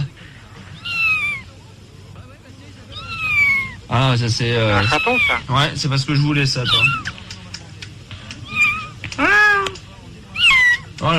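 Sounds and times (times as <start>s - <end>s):
baby giraffe calling: 2.9s - 3.8s, 4.7s - 5.5s, 6.6s - 7.2s, 8.4s - 11.0s
speech: 3.9s - 7.1s.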